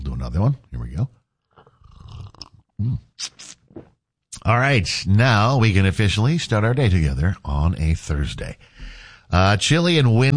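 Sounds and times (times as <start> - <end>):
speech: 0.2 - 1.2, 2.8 - 3.4, 4.5 - 10.3
slurping hot coffee: 1.5 - 2.6
short airy breaths: 8.6 - 9.3.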